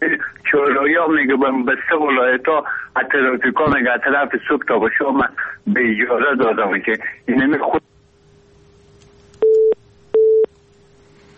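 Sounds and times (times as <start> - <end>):
speech: 0.8 - 7.9
phone busy tone after a call is cut off: 9.4 - 10.5.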